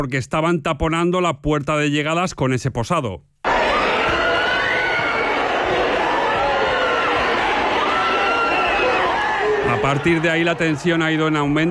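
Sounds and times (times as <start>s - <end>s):
speech: 0.0s - 3.4s, 9.8s - 11.7s
crowd shouting in protest: 3.4s - 11.7s.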